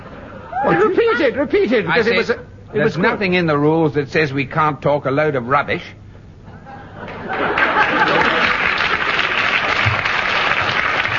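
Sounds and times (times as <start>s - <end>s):
laughter: 0.0s - 2.5s, 6.5s - 9.1s
speech: 0.6s - 6.0s
audience applause: 7.1s - 11.1s.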